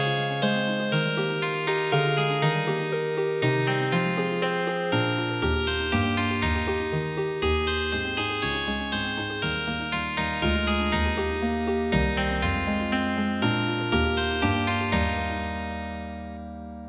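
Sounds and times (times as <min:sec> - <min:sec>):
healing harp music: 0:00.1 - 0:16.8.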